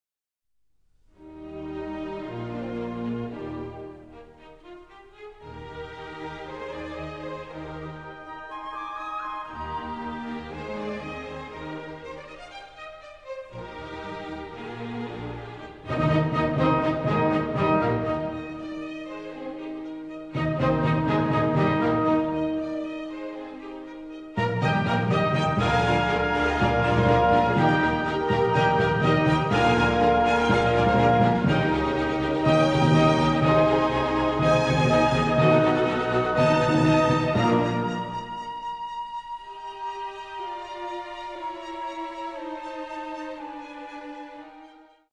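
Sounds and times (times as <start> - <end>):
trumpet concerto: 5.4 - 45.1.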